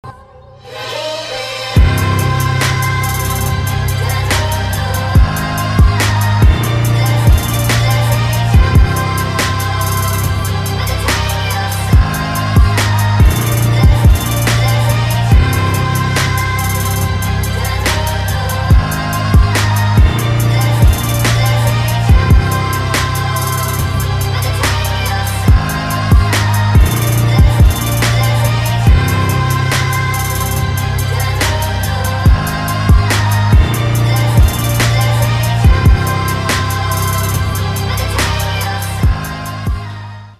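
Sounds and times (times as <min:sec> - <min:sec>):
instrumental music: 0:00.6 - 0:40.3.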